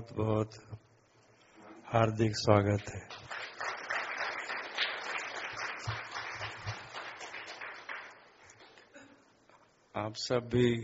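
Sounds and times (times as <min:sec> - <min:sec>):
speech: 0:00.0 - 0:00.8, 0:01.9 - 0:03.3, 0:10.0 - 0:10.8
audience clapping: 0:02.7 - 0:08.9.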